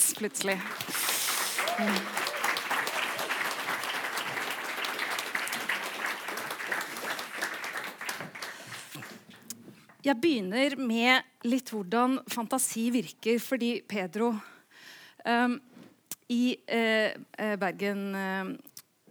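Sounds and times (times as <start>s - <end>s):
audience applause: 0.0s - 9.4s
speech: 0.2s - 1.1s, 1.8s - 2.2s, 10.0s - 14.5s, 15.2s - 15.7s, 16.3s - 19.0s.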